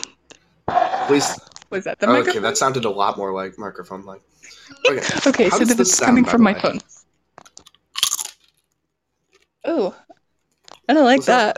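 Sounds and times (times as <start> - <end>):
speech: 1.1 - 6.9, 10.9 - 11.5
chewing crunchy food near the microphone: 7.4 - 9.5.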